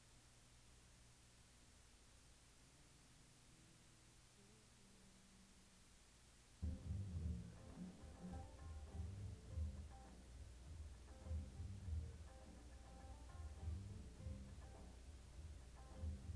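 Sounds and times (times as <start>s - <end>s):
melodica: 6.6s - 16.3s.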